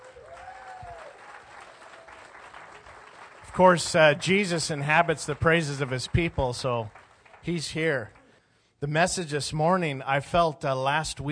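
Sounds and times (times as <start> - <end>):
audience hand clapping: 0.0 - 8.4
speech: 3.6 - 8.2, 8.8 - 11.2.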